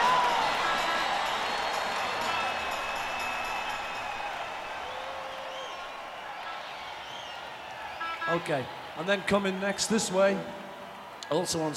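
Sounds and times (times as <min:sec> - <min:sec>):
whistle: 0:00.0 - 0:06.2, 0:07.0 - 0:08.3
concert audience cheering: 0:00.0 - 0:11.7
speech: 0:08.3 - 0:10.6, 0:11.3 - 0:11.7.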